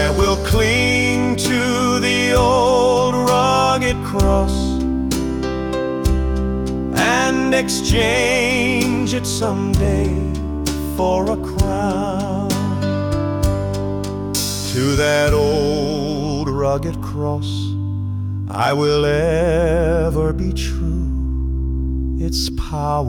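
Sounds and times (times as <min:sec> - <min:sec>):
man singing a hymn: 0:00.0 - 0:05.0, 0:06.9 - 0:12.9, 0:14.6 - 0:17.8, 0:18.5 - 0:21.2, 0:22.2 - 0:23.0
piano: 0:00.0 - 0:23.0.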